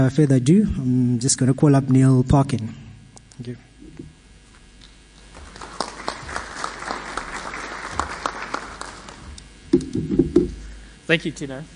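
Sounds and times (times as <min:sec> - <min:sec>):
speech: 0:00.0 - 0:02.8, 0:03.4 - 0:04.1, 0:11.1 - 0:11.7
audience applause: 0:05.3 - 0:09.3.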